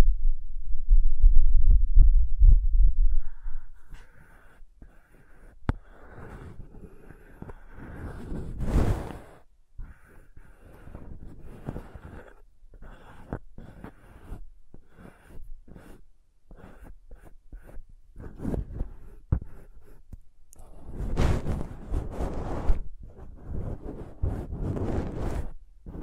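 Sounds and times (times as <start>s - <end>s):
heavy low thumping rumble: 0.0s - 4.0s
crayons tapping, scraping and rubbing across paper: 3.8s - 26.0s.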